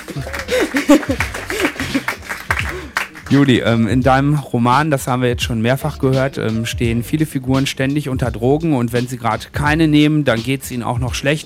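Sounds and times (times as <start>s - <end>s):
audience laughing: 0.0s - 3.2s
people whooping: 0.0s - 3.2s
audience applause: 0.0s - 3.6s
speech: 0.2s - 2.0s, 3.3s - 11.4s.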